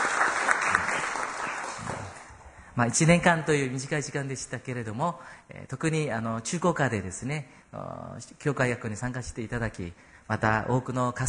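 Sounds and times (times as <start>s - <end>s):
church gathering applauding a departing teacher: 0.0s - 2.4s
speech: 2.8s - 11.2s.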